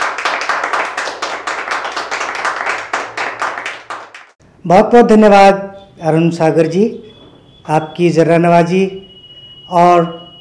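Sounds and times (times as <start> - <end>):
audience clapping in welcome at a poetry recitation gathering: 0.0 - 4.4
speech: 4.6 - 7.1, 7.7 - 9.0, 9.7 - 10.2.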